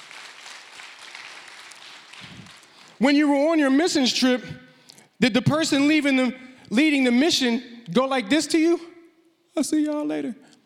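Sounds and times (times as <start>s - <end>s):
crowd clapping: 0.0s - 3.0s
speech: 3.0s - 4.6s, 5.2s - 8.9s, 9.6s - 10.6s.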